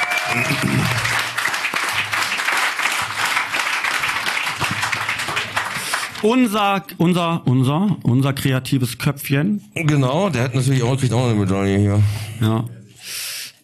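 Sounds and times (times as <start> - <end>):
audience applause: 0.0 - 6.5
speech: 0.3 - 1.1, 6.2 - 13.2.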